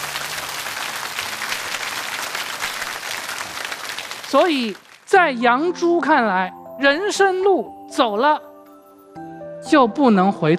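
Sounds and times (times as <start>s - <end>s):
audience applause: 0.0s - 5.1s
speech: 4.3s - 8.5s, 9.2s - 10.5s.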